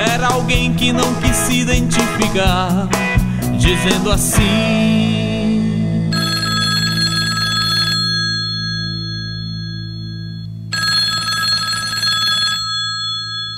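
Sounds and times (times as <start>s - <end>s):
speech: 0.2s - 5.2s
telephone bell ringing: 6.1s - 13.5s.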